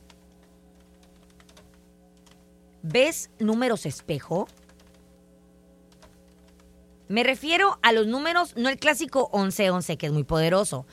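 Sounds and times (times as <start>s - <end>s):
soft keyboard typing: 0.0s - 5.1s, 5.9s - 6.8s
low steady hum: 0.0s - 10.9s
speech: 2.8s - 4.6s, 7.1s - 10.9s.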